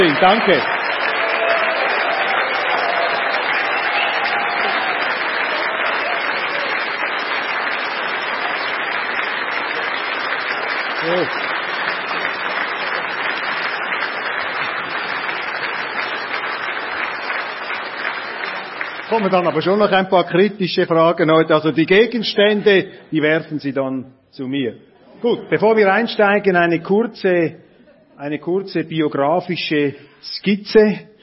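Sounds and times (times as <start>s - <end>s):
speech: 0.0s - 0.7s, 11.1s - 11.4s, 19.1s - 27.6s, 28.2s - 31.1s
audience applause for guest: 0.0s - 20.0s.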